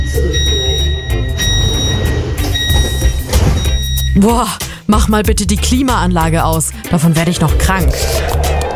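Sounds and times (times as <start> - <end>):
train door closing warning beep: 0.0 - 4.4
speech: 4.2 - 8.6.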